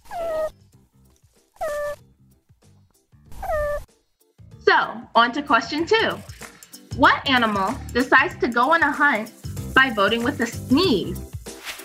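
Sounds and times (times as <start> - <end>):
meerkat move calls: 0.0 - 0.5, 1.6 - 2.0, 3.3 - 3.9
speech: 4.7 - 6.3, 7.0 - 11.3.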